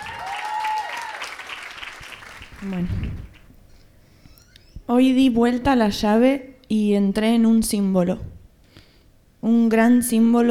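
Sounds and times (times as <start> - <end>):
audience applauding: 0.0 - 3.5
speech: 2.6 - 3.4, 4.9 - 8.3, 9.4 - 10.4.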